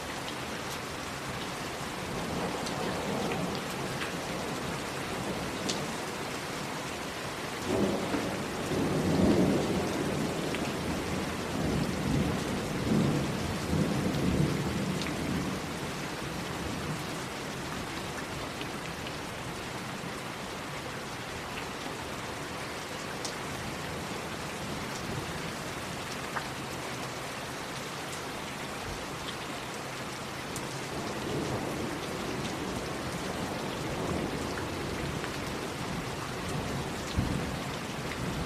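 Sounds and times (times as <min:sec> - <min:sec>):
rain falling steadily: 0:00.0 - 0:38.4.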